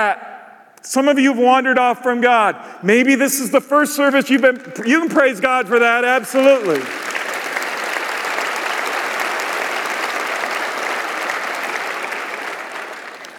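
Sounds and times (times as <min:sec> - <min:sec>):
speech: 0:00.0 - 0:07.1
audience applause: 0:04.2 - 0:13.3.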